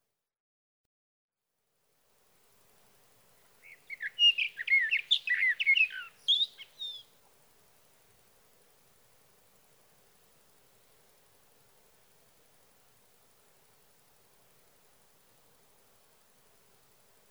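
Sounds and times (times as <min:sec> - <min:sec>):
sage thrasher delivering a fast rambling warble: 0:03.6 - 0:07.0.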